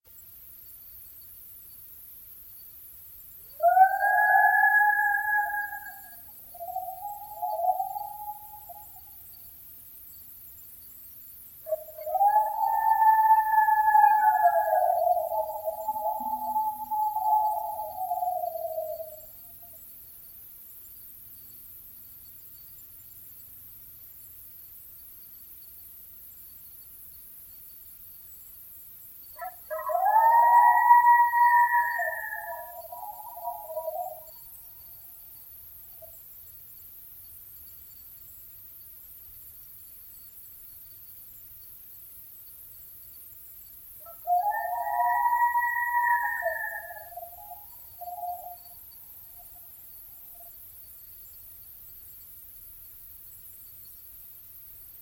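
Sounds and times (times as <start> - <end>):
coyote: 2.4 - 24.4, 27.9 - 39.0, 42.6 - 52.4.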